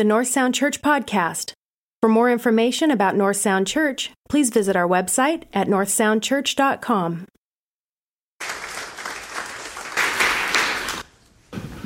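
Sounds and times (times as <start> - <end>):
speech: 0.0 - 7.4
church congregation applauding in a standing ovation: 8.4 - 11.1.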